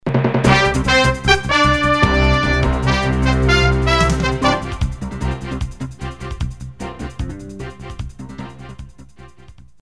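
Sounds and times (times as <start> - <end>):
news sounder jingle: 0.5 - 8.0.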